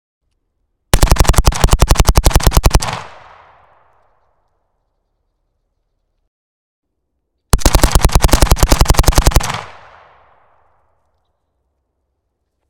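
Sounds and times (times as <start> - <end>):
AK47 rifle firing in a big open area: 0.9 - 3.8, 7.5 - 10.5.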